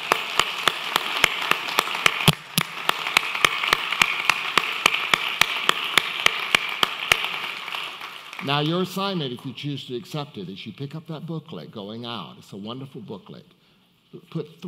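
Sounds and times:
audience applause: 0.0s - 8.9s
speech: 8.5s - 14.6s.

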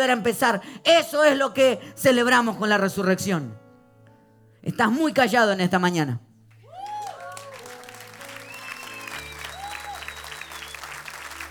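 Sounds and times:
speech: 0.0s - 3.6s, 4.6s - 6.2s
audience applauding: 6.6s - 11.4s.

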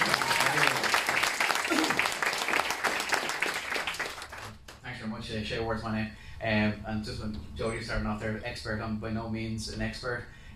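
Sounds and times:
audience applause: 0.0s - 4.6s
speech: 5.4s - 10.4s.

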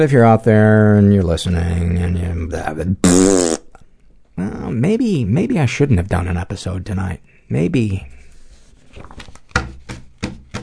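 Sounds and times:
speech: 0.0s - 3.6s, 4.4s - 8.2s
papers being shuffled: 8.2s - 10.2s.

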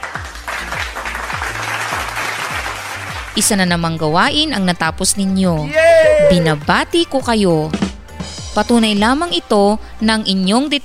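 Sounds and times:
applause from a class of students: 0.0s - 3.4s
speech: 3.4s - 7.8s, 8.6s - 10.8s.

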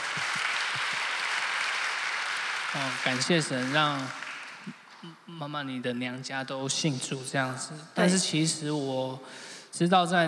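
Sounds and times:
audience applause: 0.0s - 5.1s
speech: 2.7s - 10.2s.

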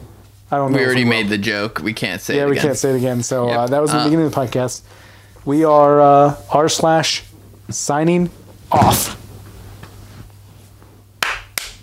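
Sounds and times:
speech: 0.5s - 9.2s
hands clapping: 11.2s - 11.8s.

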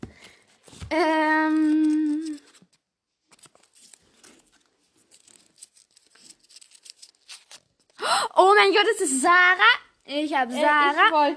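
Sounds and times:
paper rustling and crinkling as a name slip is drawn: 0.1s - 8.0s
speech: 0.9s - 1.8s, 8.4s - 11.3s.

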